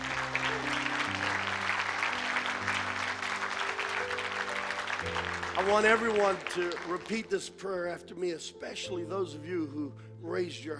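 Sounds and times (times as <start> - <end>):
church audience applause: 0.0 - 7.3
speech: 5.6 - 10.7.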